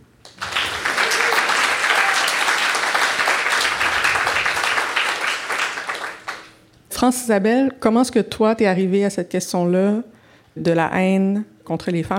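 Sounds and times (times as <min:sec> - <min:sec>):
audience applause: 0:00.3 - 0:06.5
speech: 0:07.0 - 0:12.1.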